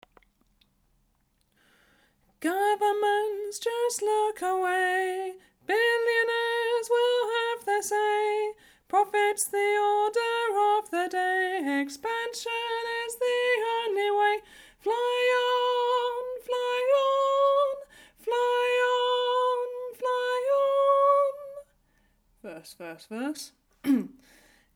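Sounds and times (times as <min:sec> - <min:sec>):
soprano singing: 0:02.4 - 0:21.8.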